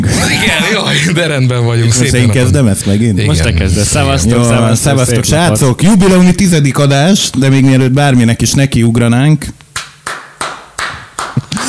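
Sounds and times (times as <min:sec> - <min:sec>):
faint hum: 0:00.0 - 0:11.6
speech: 0:00.7 - 0:09.6
sharp hand claps: 0:09.7 - 0:11.6.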